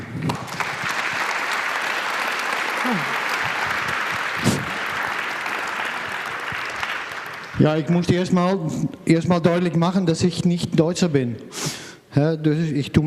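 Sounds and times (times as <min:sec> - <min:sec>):
audience applause: 0:00.0 - 0:08.1
speech: 0:02.9 - 0:03.1, 0:07.6 - 0:13.0.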